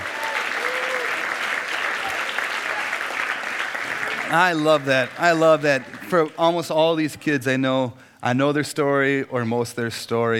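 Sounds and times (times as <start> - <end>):
audience applauding: 0.0 - 6.8
speech: 4.3 - 10.3.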